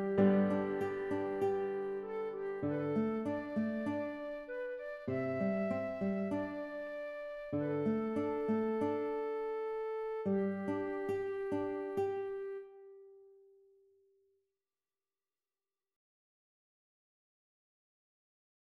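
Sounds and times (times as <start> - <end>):
piano: 0.0 - 12.8
flute: 0.0 - 13.0
guitar: 0.0 - 13.7.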